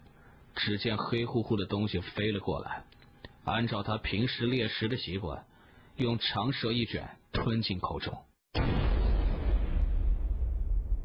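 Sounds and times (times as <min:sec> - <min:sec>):
speech: 0:00.6 - 0:08.8
grenade exploding with a dull bang: 0:08.6 - 0:11.0.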